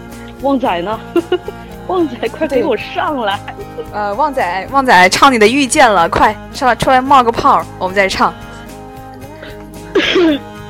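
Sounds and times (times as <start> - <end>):
speech: 0.4 - 8.4
throat clearing: 9.9 - 10.6.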